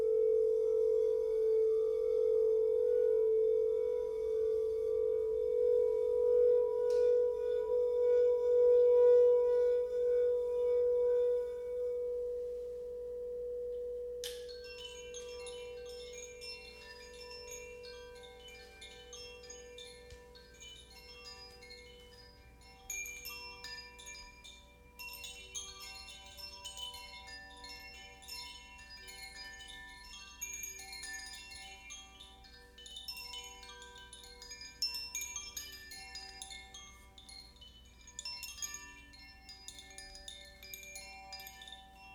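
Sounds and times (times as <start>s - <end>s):
singing bowl humming: 0.0s - 42.1s
tinkling chimes: 13.6s - 42.1s.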